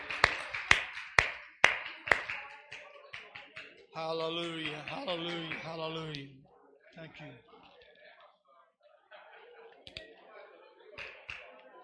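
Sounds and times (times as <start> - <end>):
audience hand clapping: 0.0 - 6.3, 11.0 - 11.7
speech: 4.0 - 6.4, 7.0 - 7.6.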